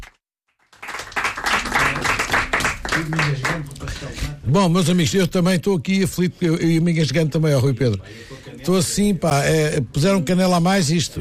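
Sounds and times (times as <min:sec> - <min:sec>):
round of applause: 0:00.0 - 0:03.7
speech: 0:03.0 - 0:11.2.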